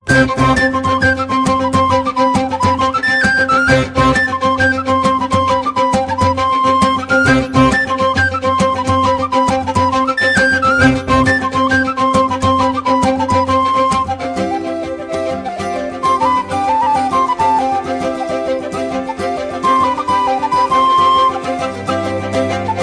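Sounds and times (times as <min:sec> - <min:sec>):
jig tunes: 0:00.0 - 0:22.8.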